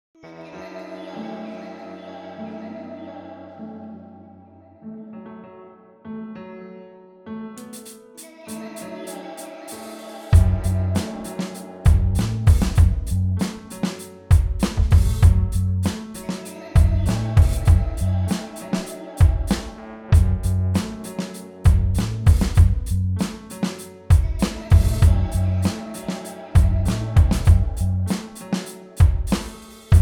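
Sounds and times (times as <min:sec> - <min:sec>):
music beat: 0:10.3 - 0:30.0.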